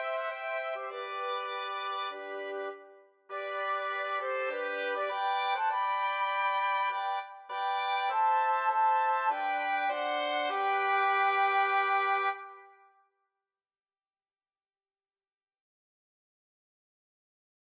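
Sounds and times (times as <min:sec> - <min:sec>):
hymn music: 0:00.0 - 0:12.8.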